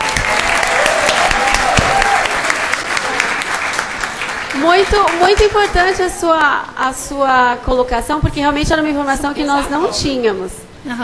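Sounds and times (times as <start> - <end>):
audience applause: 0.0 - 6.3
speech: 4.6 - 11.0.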